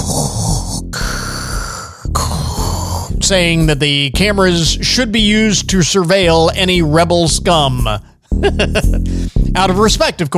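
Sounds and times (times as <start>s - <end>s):
man imitating Darth Vader's mechanical breathing into a microphone: 0.0s - 3.2s, 8.0s - 8.4s, 9.0s - 9.6s
speech: 3.2s - 10.3s.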